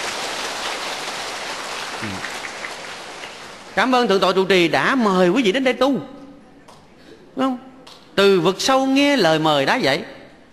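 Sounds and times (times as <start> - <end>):
audience applause: 0.0 - 3.8
low voice murmur: 2.0 - 2.4
speech: 2.0 - 2.4, 3.8 - 6.2, 7.4 - 7.6, 8.2 - 10.2.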